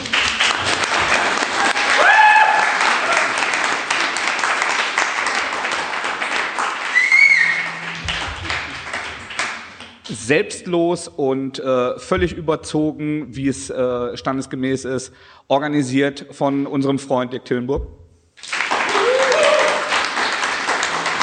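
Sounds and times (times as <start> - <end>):
audience applause: 0.0 - 10.1, 18.4 - 21.2
whistles: 6.8 - 7.9
speech: 10.3 - 18.0.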